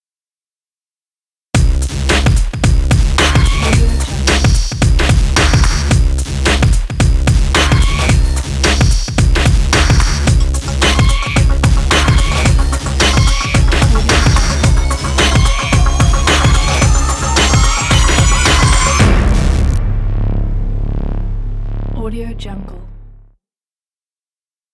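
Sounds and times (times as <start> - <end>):
electronic industrial intro beat: 1.6 - 23.1.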